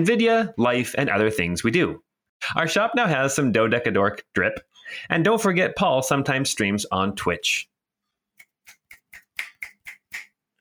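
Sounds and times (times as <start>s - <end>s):
speech: 0.0s - 7.7s
finger snapping: 8.4s - 10.3s.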